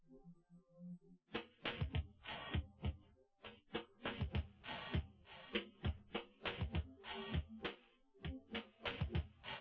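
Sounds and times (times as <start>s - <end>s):
instrumental with drums: 1.4s - 3.0s, 3.7s - 9.6s.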